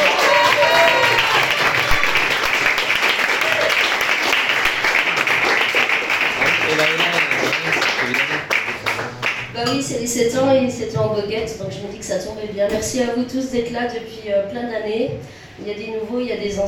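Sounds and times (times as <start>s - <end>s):
audience applause: 0.0s - 9.6s
speech: 9.9s - 16.6s.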